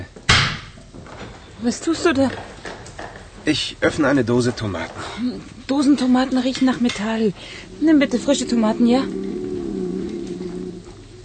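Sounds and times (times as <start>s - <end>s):
speech: 1.6s - 2.5s, 3.4s - 9.2s
stomach growling: 7.1s - 11.2s.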